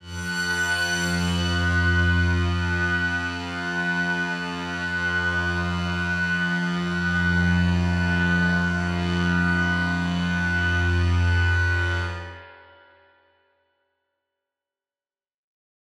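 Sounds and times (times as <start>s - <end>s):
dystopian drone in F: 0.0s - 12.4s.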